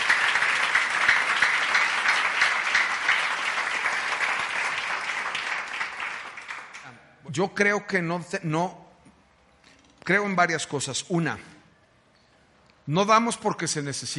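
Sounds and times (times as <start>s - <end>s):
audience applause: 0.0s - 6.9s
speech: 7.4s - 8.8s, 10.1s - 11.5s, 12.8s - 14.1s.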